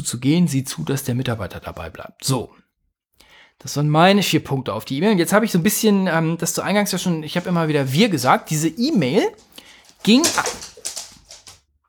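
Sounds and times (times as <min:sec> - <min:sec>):
speech: 0:00.0 - 0:02.6, 0:03.6 - 0:10.7
dog's paws slipping on a parquet floor while chasing a fly: 0:06.8 - 0:11.6.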